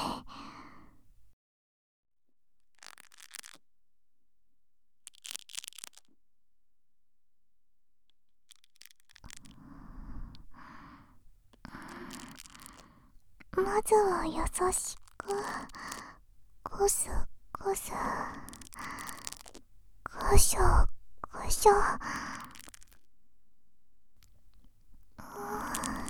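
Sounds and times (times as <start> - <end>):
soft ASMR breathing into one ear: 9.3 - 16.3, 17.0 - 22.9, 25.2 - 26.0
speech: 13.7 - 16.0, 16.8 - 18.6, 20.3 - 20.9, 21.5 - 22.2.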